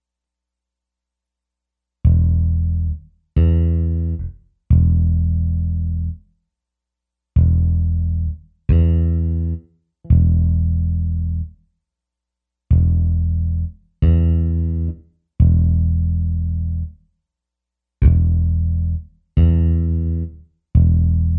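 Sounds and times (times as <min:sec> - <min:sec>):
bass: 0:02.0 - 0:06.4, 0:07.4 - 0:11.7, 0:12.7 - 0:17.2, 0:18.0 - 0:21.3.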